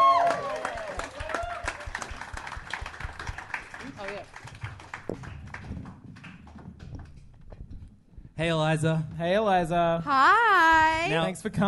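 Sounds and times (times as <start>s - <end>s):
television talk show studio audience applauding and cheering a guest: 0.0s - 7.2s
speech: 8.4s - 11.6s.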